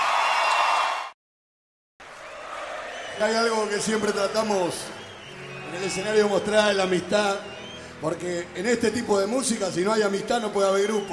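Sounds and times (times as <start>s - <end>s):
audience applause: 0.0s - 1.1s, 2.0s - 7.8s
speech: 3.2s - 5.0s, 5.7s - 11.1s.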